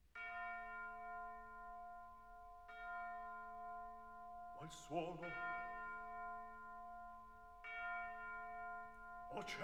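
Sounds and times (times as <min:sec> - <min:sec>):
nearby church bell ringing: 0:00.0 - 0:09.6
speech: 0:04.6 - 0:05.5, 0:09.4 - 0:09.6.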